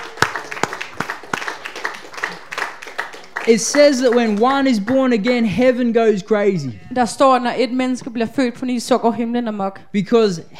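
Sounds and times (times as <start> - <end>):
audience applause: 0.0 - 5.5
speech: 3.4 - 10.5.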